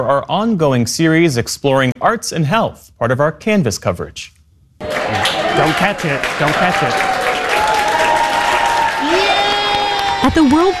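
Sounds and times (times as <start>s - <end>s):
speech: 0.0s - 7.2s, 10.2s - 10.7s
health professionals at the Mayo Clinic applauding colleagues playing Loser Ball: 4.8s - 10.7s.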